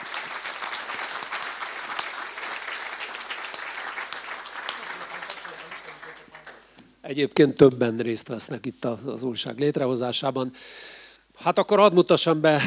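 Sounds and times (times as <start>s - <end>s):
audience applause: 0.0s - 6.7s
speech: 7.0s - 12.6s.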